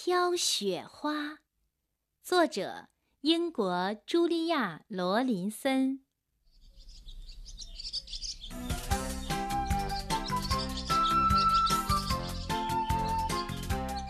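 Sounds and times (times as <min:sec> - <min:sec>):
speech: 0:00.0 - 0:01.4, 0:02.2 - 0:06.0
birds chirping and singing in spring woods: 0:06.4 - 0:14.0.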